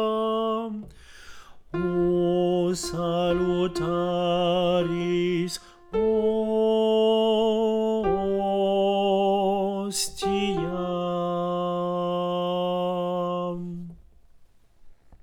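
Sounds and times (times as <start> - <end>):
choir chanting a Latin hymn: 1.8 - 13.6.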